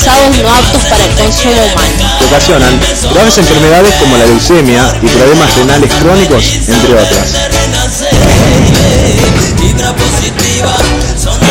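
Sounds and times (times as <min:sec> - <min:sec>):
speech: 0:00.6 - 0:07.6, 0:08.4 - 0:11.4
explosion: 0:08.0 - 0:11.4.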